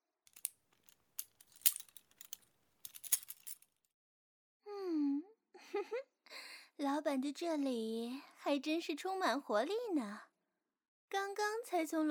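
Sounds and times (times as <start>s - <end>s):
keys jangling: 0.3s - 3.6s
speech: 6.8s - 10.3s, 11.1s - 12.1s.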